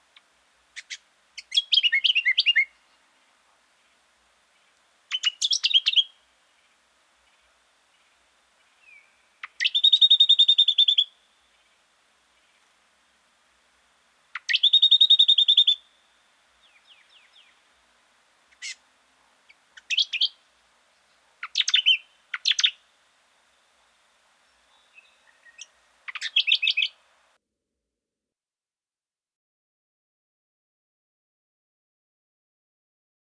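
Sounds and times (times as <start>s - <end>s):
brown honeyeater calling: 0.1s - 3.6s, 4.6s - 6.6s, 7.2s - 11.8s, 14.3s - 17.7s, 18.5s - 22.9s, 23.7s - 27.3s.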